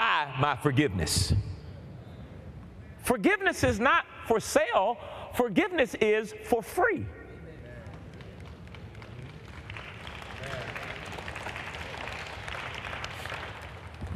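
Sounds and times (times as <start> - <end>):
speech: 0.2 - 1.5, 3.0 - 7.2
light half-hearted audience applause: 7.6 - 14.1.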